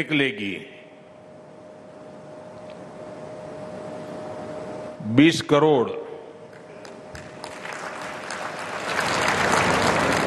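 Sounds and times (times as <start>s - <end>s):
speech: 0.0s - 0.8s, 5.1s - 6.0s
crowd applause during a speech: 7.3s - 10.2s.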